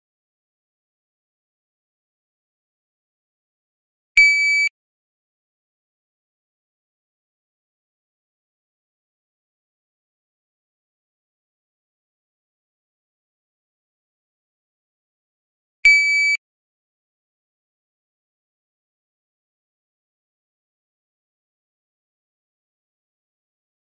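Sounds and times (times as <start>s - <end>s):
dry fire beep: 4.2s - 4.7s, 15.9s - 16.4s.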